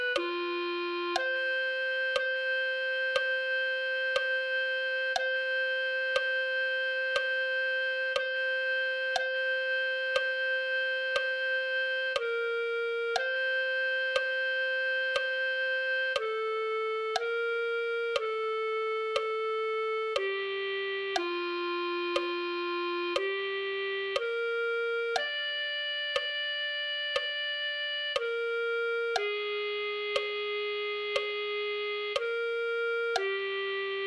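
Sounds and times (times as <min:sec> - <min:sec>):
clarinet: 0:00.0 - 0:34.0.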